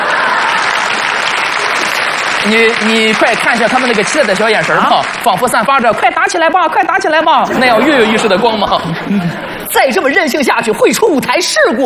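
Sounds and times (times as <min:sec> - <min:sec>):
laughter: 0:00.0 - 0:02.2, 0:07.4 - 0:10.3
audience applause: 0:00.0 - 0:06.1
speech: 0:02.4 - 0:11.8.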